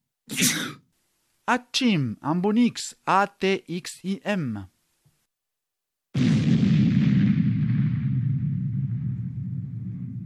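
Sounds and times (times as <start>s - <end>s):
speech: 0.3s - 0.8s, 1.5s - 4.7s
explosion: 6.2s - 10.2s.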